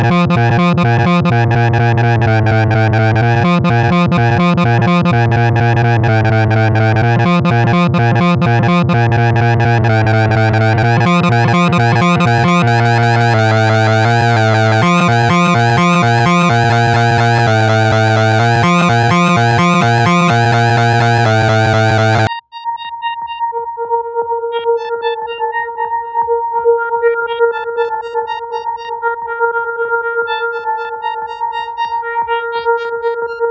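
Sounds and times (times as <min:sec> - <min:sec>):
Moog Sub 37 synthesizer in F and D minor: 0:00.0 - 0:33.4.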